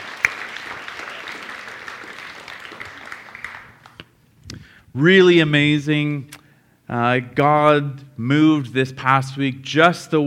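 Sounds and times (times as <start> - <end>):
audience applause: 0.0 - 4.0
speech: 5.0 - 10.2.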